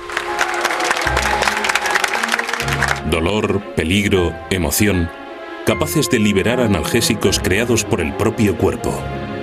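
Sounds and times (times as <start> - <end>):
audience applause: 0.0 - 3.4
speech: 3.1 - 9.3.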